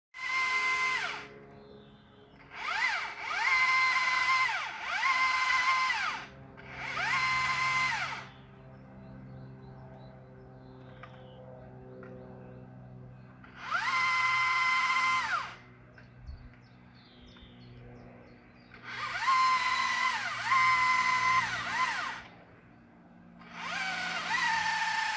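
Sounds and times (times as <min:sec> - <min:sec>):
tree saw: 0:00.2 - 0:01.4, 0:02.4 - 0:08.4, 0:13.4 - 0:15.7, 0:18.8 - 0:22.5, 0:23.4 - 0:25.1.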